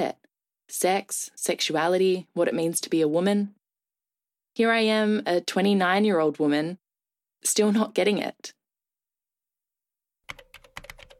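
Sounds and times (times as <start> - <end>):
speech: 0.0 - 3.6, 4.6 - 6.8, 7.4 - 8.6
typing on a computer keyboard during a Google search: 10.3 - 11.1.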